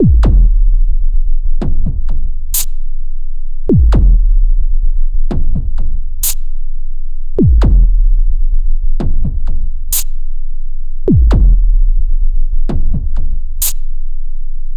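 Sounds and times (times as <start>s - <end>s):
drum: 0.0s - 2.7s, 3.7s - 6.4s, 7.4s - 10.1s, 11.1s - 13.8s.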